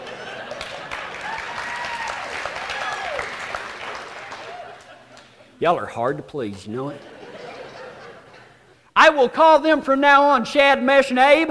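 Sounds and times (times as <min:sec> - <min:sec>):
laughter: 0:00.0 - 0:01.6, 0:04.2 - 0:05.6, 0:06.7 - 0:08.8
audience applause: 0:00.0 - 0:05.3
whistles and cheers: 0:01.2 - 0:03.6
speech: 0:05.6 - 0:07.1, 0:09.0 - 0:11.4.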